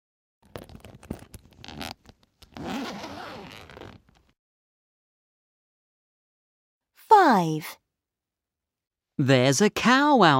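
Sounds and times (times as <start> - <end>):
tent zipper being pulled open: 0.4 - 4.4
speech: 7.3 - 7.8, 9.2 - 10.3.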